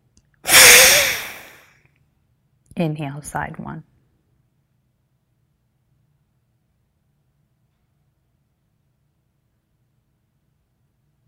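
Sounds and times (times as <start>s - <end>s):
exhale through one nostril in an alternate-nostril breathing exercise: 0.5s - 1.6s
speech: 2.8s - 3.9s.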